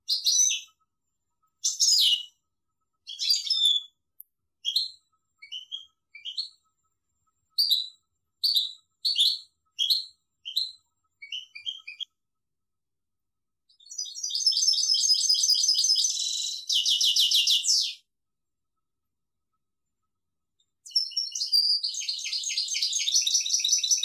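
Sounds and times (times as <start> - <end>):
European goldfinch chirping: 0.1 - 0.8, 1.6 - 2.4, 3.0 - 3.9, 4.6 - 6.6, 7.6 - 12.1, 13.8 - 18.0, 20.8 - 24.0.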